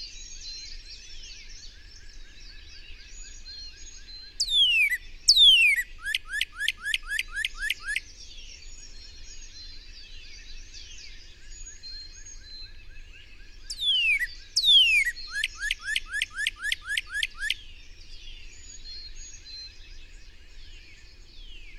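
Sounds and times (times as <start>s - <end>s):
bird chirping: 0.0s - 21.7s.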